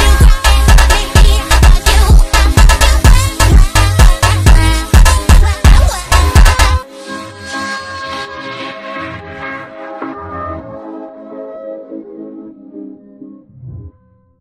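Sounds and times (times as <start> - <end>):
funk music: 0.0 - 6.8.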